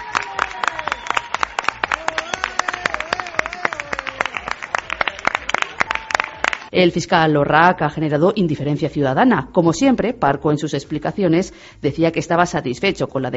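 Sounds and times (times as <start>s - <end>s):
crowd applauding: 0.0s - 6.7s
speech: 6.7s - 13.3s.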